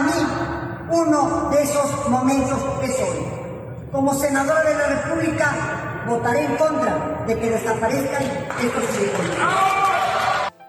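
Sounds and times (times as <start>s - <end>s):
speech: 1.0s - 10.0s
opposition legislators applauding: 8.3s - 10.6s.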